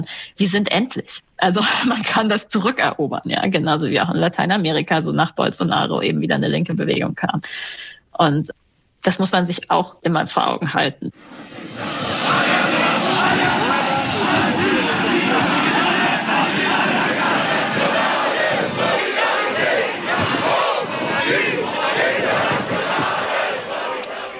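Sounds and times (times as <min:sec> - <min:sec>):
speech: 0:00.0 - 0:12.1
protest crowd in Erfurt chanting and shouting: 0:11.2 - 0:24.3.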